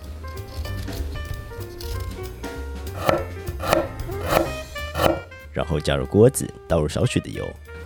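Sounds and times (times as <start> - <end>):
knife slicing ginger: 3.0 - 5.3
speech: 5.7 - 7.7.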